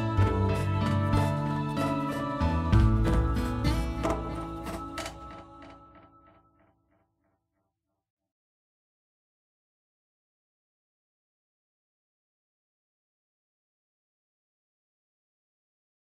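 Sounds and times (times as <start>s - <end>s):
mall music: 0.0s - 6.0s.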